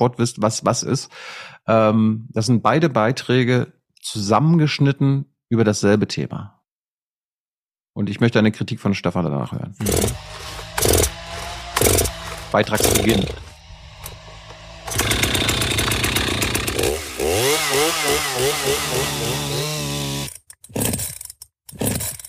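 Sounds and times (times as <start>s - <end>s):
speech: 0.0s - 6.6s, 8.0s - 11.0s, 12.5s - 13.4s
chainsaw starting and running in a forest: 9.8s - 22.2s.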